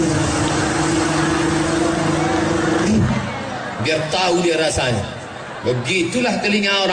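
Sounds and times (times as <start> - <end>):
motorcycle with open exhaust revving loudly: 0.0 - 3.8
speech: 3.9 - 6.9.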